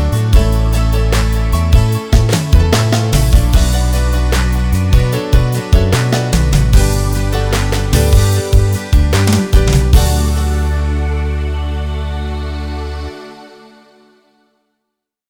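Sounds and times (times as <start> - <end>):
piano ballad: 0.0 - 13.6.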